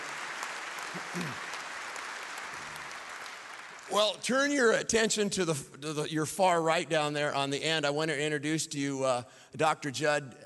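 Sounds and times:
audience applauding to welcome a speaker: 0.0s - 4.3s
speech: 0.9s - 1.5s, 3.9s - 10.4s.

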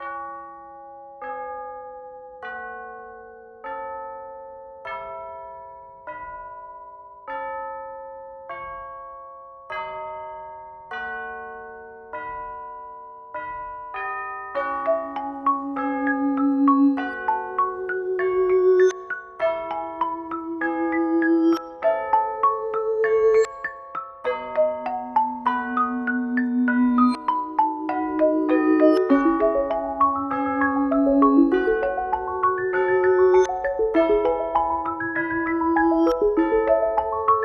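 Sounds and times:
bells: 0.0s - 37.4s
chimes: 0.0s - 37.4s
marimba: 14.6s - 37.4s
vibraphone: 14.6s - 37.4s.

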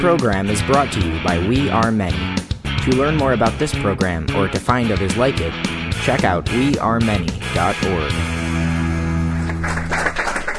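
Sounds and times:
speech: 0.0s - 8.7s
audience applause: 9.2s - 10.5s.

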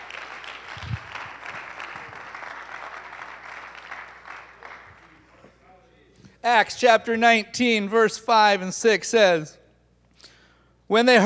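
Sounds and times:
audience clapping: 0.0s - 5.7s
speech: 6.4s - 9.6s, 10.9s - 11.2s.

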